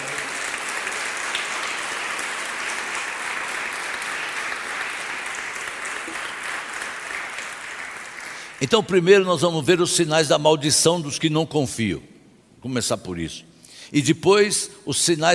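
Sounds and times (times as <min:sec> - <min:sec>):
audience applause: 0:00.0 - 0:08.6
speech: 0:08.6 - 0:15.3.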